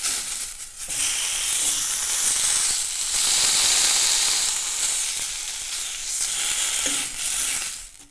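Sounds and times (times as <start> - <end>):
bacon frying: 0.0 - 8.1.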